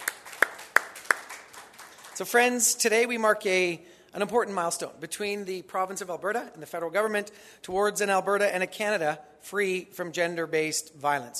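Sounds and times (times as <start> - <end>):
audience round of applause: 0.0 - 2.2
speech: 2.2 - 11.3.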